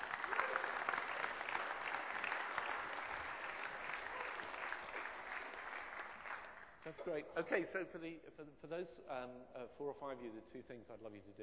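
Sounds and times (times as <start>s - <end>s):
audience applause: 0.0s - 6.9s
speech: 6.9s - 11.4s.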